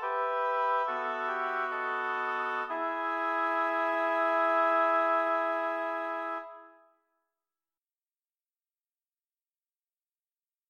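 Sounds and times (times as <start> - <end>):
lyrical oboe quartet: 0.0 - 6.8.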